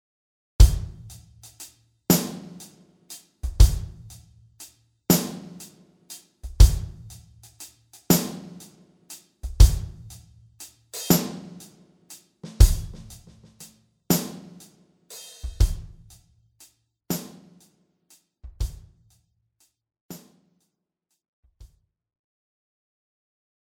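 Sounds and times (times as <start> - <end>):
drum: 0.6 - 16.2, 17.1 - 17.7, 18.4 - 19.0.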